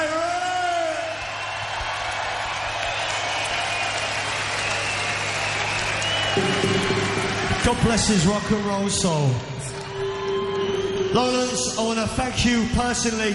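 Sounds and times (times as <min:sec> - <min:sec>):
large crowd cheering and applauding: 0:00.0 - 0:13.3
speech: 0:07.7 - 0:09.7, 0:11.1 - 0:13.3.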